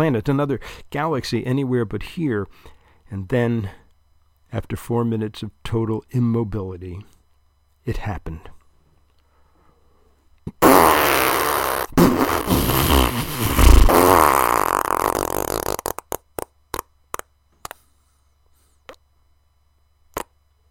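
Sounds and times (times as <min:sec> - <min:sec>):
speech: 0:00.0 - 0:03.8, 0:04.5 - 0:07.2, 0:07.8 - 0:08.6
loud fart: 0:10.5 - 0:17.8, 0:20.1 - 0:20.3.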